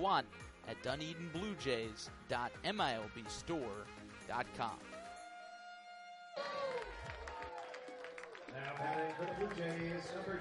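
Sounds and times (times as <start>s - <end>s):
speech: 0.0s - 5.0s, 8.5s - 10.3s
Wednesday night ballpark crowd ambience at TD Ballpark: 6.8s - 10.3s.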